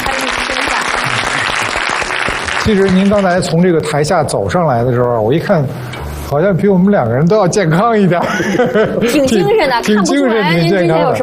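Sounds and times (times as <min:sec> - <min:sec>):
audience applause welcoming a guest onto a stage: 0:00.0 - 0:03.6
speech: 0:02.6 - 0:11.2
laughter: 0:07.7 - 0:11.0.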